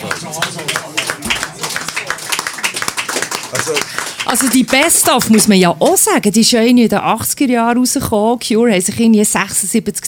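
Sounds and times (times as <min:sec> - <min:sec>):
faint murmur of voices: 0:00.0 - 0:04.7
hand claps: 0:00.0 - 0:05.6
speech: 0:03.6 - 0:10.0.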